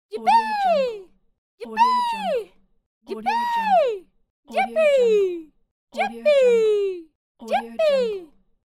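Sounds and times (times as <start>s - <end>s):
woman shouting yippee: 0.2s - 1.0s, 1.6s - 2.5s, 3.1s - 5.4s, 6.0s - 8.2s.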